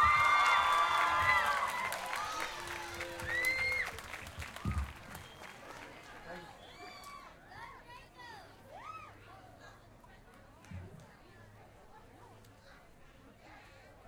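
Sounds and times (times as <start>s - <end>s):
cheers and high whoops: 0.0s - 5.6s, 6.6s - 7.4s, 8.7s - 9.2s
audience applause: 0.0s - 6.9s.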